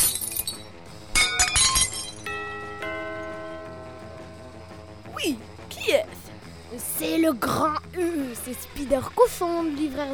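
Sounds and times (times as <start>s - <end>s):
dishes smashing: 0.0s - 2.3s
shards of glass and crockery ringing: 0.0s - 2.4s
speech: 7.0s - 10.1s.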